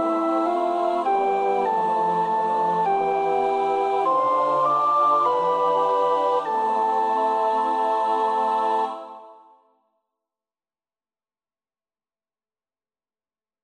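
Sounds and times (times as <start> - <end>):
soprano singing a practice part: 0.0 - 9.6.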